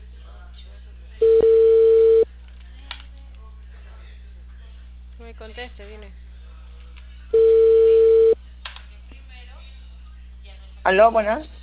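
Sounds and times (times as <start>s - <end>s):
telephone ringing tone: 1.2s - 2.2s, 7.4s - 8.4s
speech: 5.4s - 6.3s, 10.8s - 11.6s.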